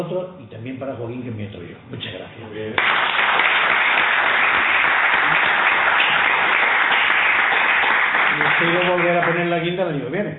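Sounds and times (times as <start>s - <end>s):
speech: 0.0s - 3.8s, 8.4s - 10.3s
sustained applause from a crowd: 2.8s - 9.6s.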